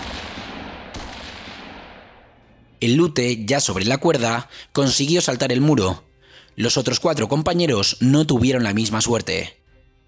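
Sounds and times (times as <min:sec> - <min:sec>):
gunfire: 0:00.0 - 0:02.5
speech: 0:02.8 - 0:09.6.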